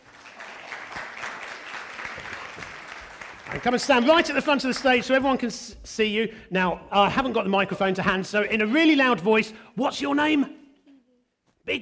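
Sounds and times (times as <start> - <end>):
audience applause: 0.0 - 5.2
speech: 3.5 - 10.6, 11.7 - 11.8.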